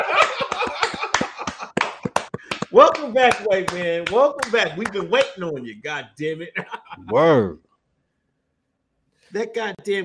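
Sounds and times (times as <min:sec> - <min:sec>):
laughter: 0:00.0 - 0:02.6, 0:06.4 - 0:07.5
clapping: 0:00.1 - 0:05.4
speech: 0:02.7 - 0:07.6, 0:09.3 - 0:10.0.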